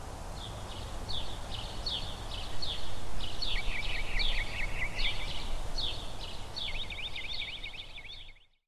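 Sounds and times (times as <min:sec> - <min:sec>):
outdoor park ambience: 0:00.0 - 0:08.6.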